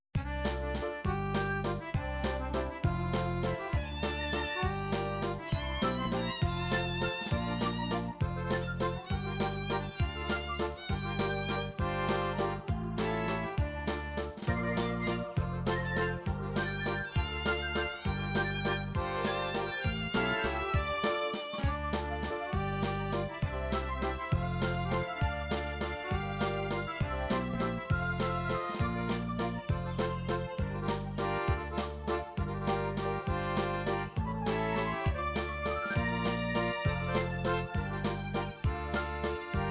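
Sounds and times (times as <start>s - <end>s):
Russian Ukrainian MIDI music: 0.2s - 39.7s.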